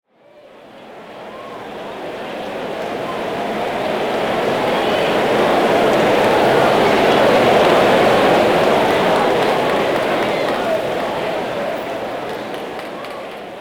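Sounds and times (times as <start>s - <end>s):
crowd ambience: 0.2s - 13.5s.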